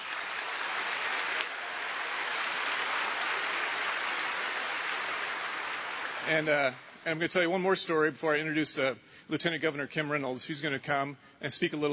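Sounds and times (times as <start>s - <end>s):
audience applause: 0.0s - 6.8s
speech: 6.3s - 11.9s.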